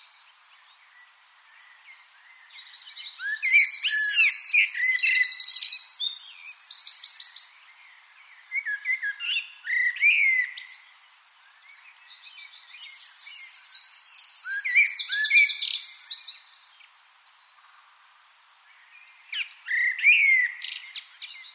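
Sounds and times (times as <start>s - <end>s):
Common blackbird song: 0.0s - 21.5s.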